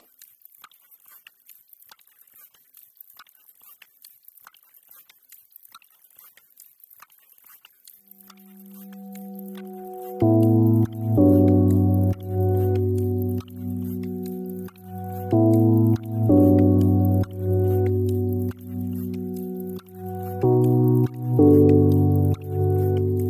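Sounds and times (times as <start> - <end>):
ambience: 8.3 - 23.2.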